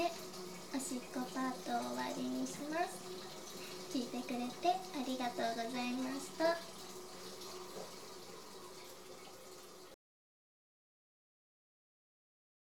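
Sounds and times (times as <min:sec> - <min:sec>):
person urinating recorded with a dummy head microphone: 0:00.0 - 0:10.0.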